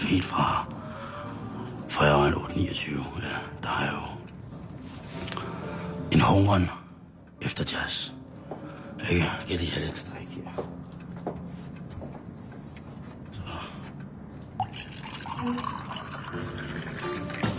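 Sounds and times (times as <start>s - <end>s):
speech: 0.1s - 0.8s, 2.0s - 4.2s, 6.2s - 6.8s, 7.4s - 8.2s, 9.0s - 11.4s, 15.4s - 16.5s
red wine pouring into a glass: 14.6s - 17.5s.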